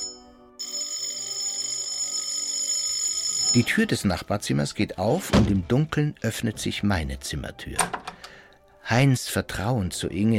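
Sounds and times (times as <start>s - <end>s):
doorbell ringing insistently: 0.0s - 4.0s
speech: 3.5s - 8.0s, 8.9s - 10.3s.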